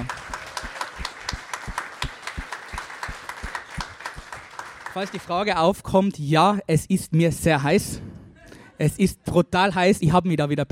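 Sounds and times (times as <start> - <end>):
audience applause: 0.0 - 5.5
speech: 5.0 - 8.1, 8.8 - 10.7.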